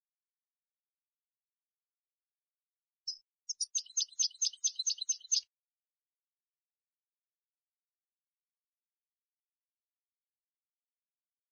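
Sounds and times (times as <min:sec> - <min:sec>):
goldfinch-type bird twittering song: 0:03.1 - 0:05.5.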